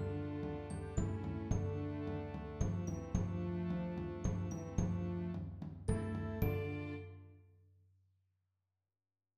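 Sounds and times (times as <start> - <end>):
percussion: 0.0 - 7.3.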